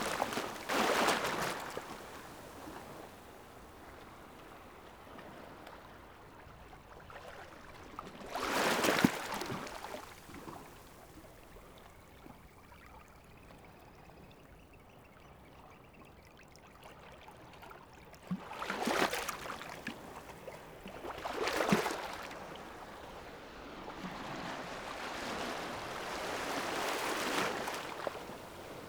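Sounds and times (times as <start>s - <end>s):
waves on a seashore: 0.0s - 5.5s, 8.2s - 10.8s, 18.6s - 28.8s.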